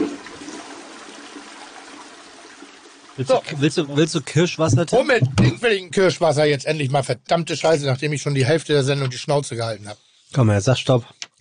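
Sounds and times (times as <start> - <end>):
toilet flushing: 0.0 - 5.7
speech: 3.2 - 11.3.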